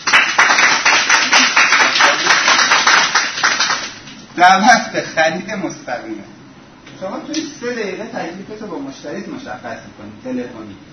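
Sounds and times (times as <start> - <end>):
audience clapping at a sales talk: 0.0 - 4.3
speech: 4.4 - 6.4, 7.0 - 10.9.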